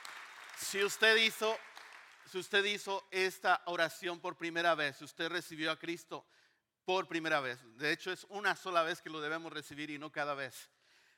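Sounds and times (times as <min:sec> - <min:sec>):
audience applauding: 0:00.0 - 0:02.4
speech: 0:00.7 - 0:01.7, 0:02.3 - 0:10.8.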